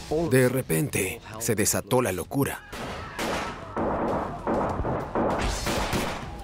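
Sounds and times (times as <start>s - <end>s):
speech: 0.1s - 2.7s
gunfire, many shots: 2.7s - 6.4s.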